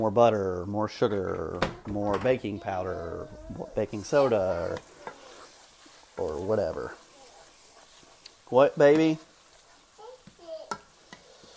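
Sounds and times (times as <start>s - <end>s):
speech: 0.0s - 4.9s, 6.2s - 7.0s, 8.5s - 9.3s
faint sizzle of ground beef in a pan: 0.0s - 11.5s
utensil scraping a pan while stirring ground beef: 3.6s - 11.5s.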